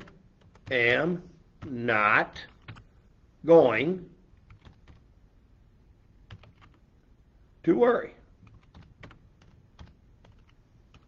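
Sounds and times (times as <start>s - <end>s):
typing on a computer keyboard: 0.0s - 3.0s, 4.3s - 5.1s, 6.2s - 6.8s, 8.3s - 11.0s
speech: 0.7s - 2.5s, 3.4s - 4.2s, 7.6s - 8.2s.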